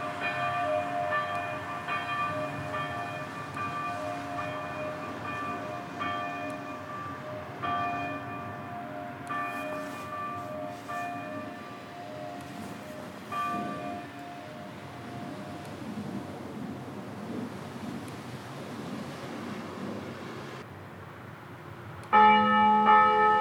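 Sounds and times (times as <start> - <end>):
solo bells: 0.0 - 17.1, 22.1 - 23.3.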